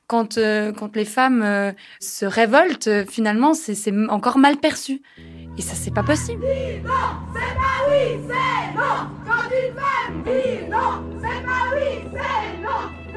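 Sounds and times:
speech: 0.1s - 13.1s
protest crowd chanting slogans: 6.4s - 12.9s.

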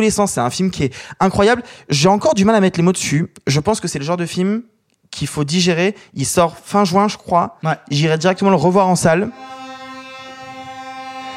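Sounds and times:
speech: 0.0s - 9.6s
truck horn blaring outside: 9.3s - 11.3s.

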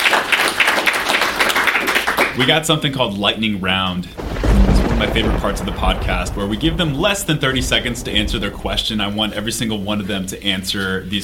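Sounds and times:
applause from a small group: 0.0s - 2.4s
speech: 2.4s - 11.2s.

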